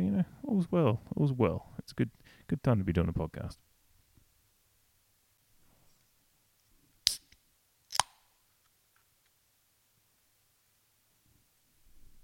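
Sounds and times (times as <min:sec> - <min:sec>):
speech: 0:00.6 - 0:03.7
beer can being cracked open: 0:07.0 - 0:08.3.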